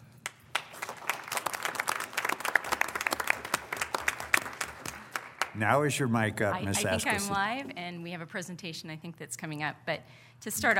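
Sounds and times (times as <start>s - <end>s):
audience applause: 0.2s - 5.9s
speech: 5.6s - 10.7s.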